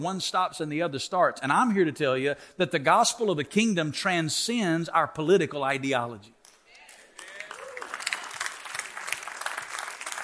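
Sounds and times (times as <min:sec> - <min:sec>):
speech: 0:00.0 - 0:06.4
audience applause: 0:07.1 - 0:10.2.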